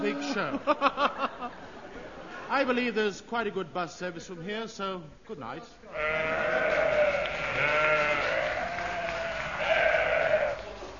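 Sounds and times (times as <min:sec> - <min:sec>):
laughter: 0:00.0 - 0:02.5
speech: 0:00.1 - 0:01.3, 0:02.5 - 0:07.0
chorus of sheep bleating: 0:05.9 - 0:10.6.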